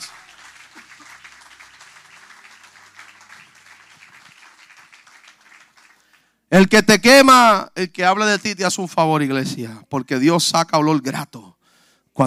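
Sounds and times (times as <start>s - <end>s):
audience applause: 0.0s - 6.2s
speech: 6.5s - 11.5s.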